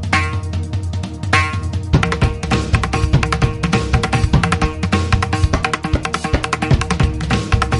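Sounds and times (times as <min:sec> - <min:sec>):
Adivasi dhol instrumental: 0:00.1 - 0:00.6, 0:01.3 - 0:07.7.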